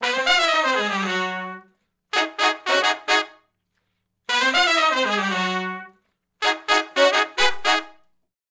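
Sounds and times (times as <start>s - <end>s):
R&B horn riff in A-flat in unison and harmony: 0.0s - 3.4s, 4.3s - 8.0s.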